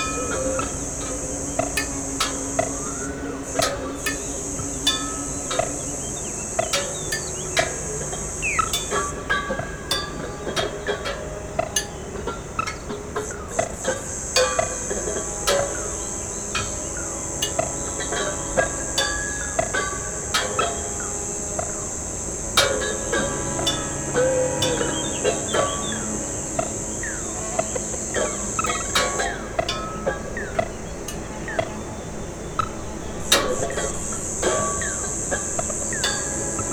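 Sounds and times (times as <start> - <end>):
sirens in an improvised performance by four musicians: 0.0 - 36.7.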